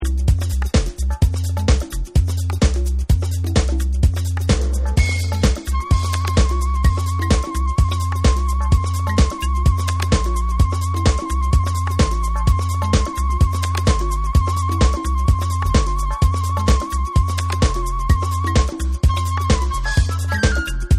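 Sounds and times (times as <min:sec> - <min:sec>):
flute dub music: 0:00.0 - 0:20.9.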